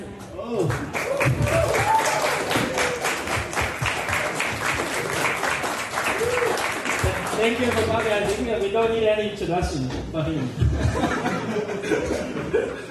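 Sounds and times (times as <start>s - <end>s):
crowd applauding: 0.6s - 8.8s
speech: 7.4s - 12.9s.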